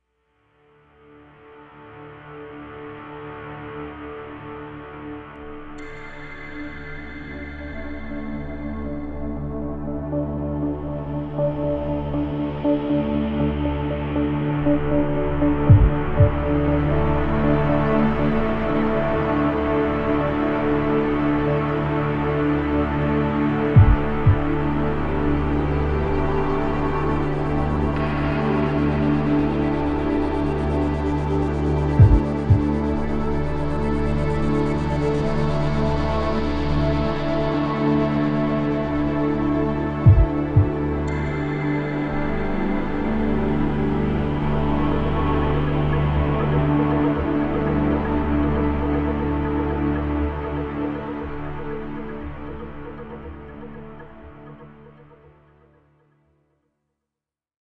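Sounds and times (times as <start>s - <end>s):
ambient music: 0.5s - 56.1s.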